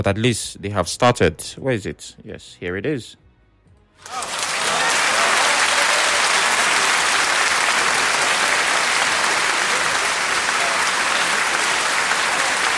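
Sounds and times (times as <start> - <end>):
speech: 0.0 - 3.2, 4.0 - 4.3
applause sound effect: 4.0 - 12.7.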